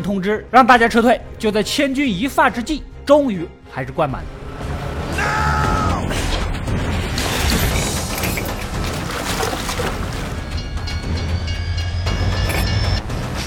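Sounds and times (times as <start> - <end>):
speech: 0.0 - 4.4
train rumbling as it slowly begins to move: 4.4 - 13.4.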